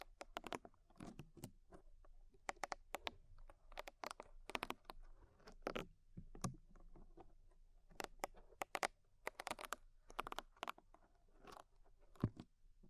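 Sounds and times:
rhinestones and clay picked away in ear cleaning: 0.0 - 1.5, 2.4 - 6.6, 7.9 - 10.9.

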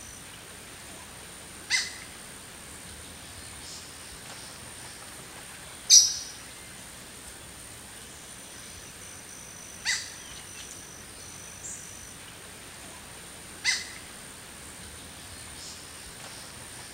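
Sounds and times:
steady quiet hiss: 0.0 - 16.9
jungle birds calling: 0.9 - 2.2, 2.9 - 6.8, 8.4 - 12.2, 12.8 - 16.9.

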